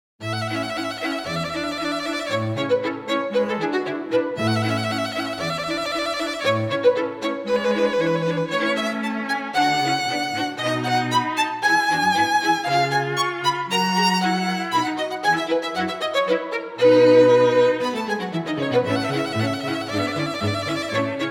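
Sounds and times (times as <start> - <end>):
string quartet: 0.2 - 21.2.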